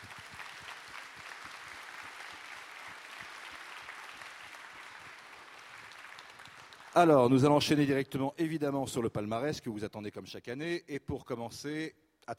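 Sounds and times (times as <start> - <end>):
audience applause: 0.0 - 7.1
speech: 7.0 - 12.3.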